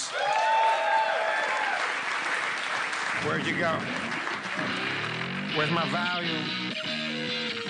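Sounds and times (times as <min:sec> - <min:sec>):
live audience applauding: 0:00.0 - 0:05.6
speech: 0:03.2 - 0:07.6.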